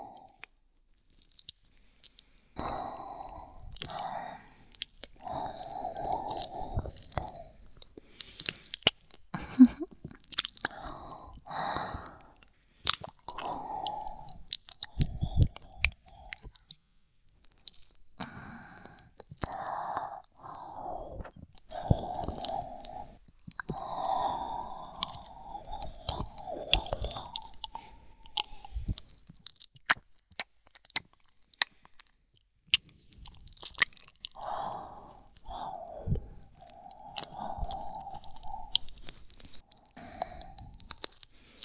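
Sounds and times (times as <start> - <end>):
ear licking in the left ear: 1.1 - 32.1, 32.7 - 41.5.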